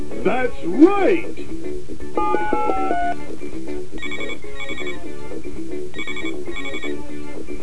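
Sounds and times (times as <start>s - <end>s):
speech: 0.3s - 1.4s
telephone ringing with electronic tones: 2.2s - 3.2s, 4.0s - 5.1s, 5.9s - 7.0s.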